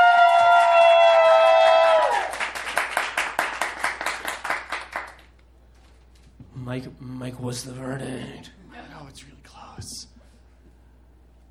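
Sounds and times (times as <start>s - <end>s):
high whooping cheer: 0.0s - 2.8s
audience clapping: 0.0s - 5.5s
speech: 6.8s - 10.1s.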